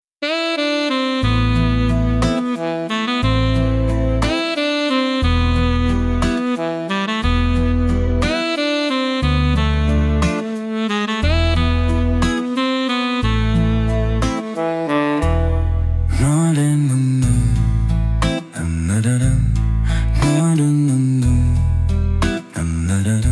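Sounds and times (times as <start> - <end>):
soul saxophone music: 0.2 - 23.2.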